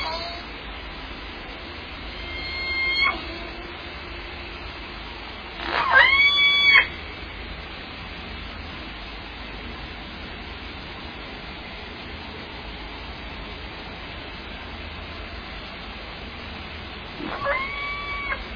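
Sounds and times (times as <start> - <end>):
orca calling: 2.1 - 4.3, 5.6 - 7.0, 17.2 - 18.5.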